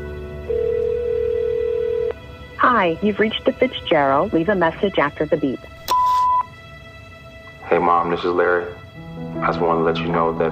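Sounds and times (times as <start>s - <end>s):
ringback tone from an outgoing phone call: 0.5s - 2.2s, 5.9s - 6.5s
speech: 2.8s - 5.8s, 8.0s - 8.8s, 9.4s - 10.5s.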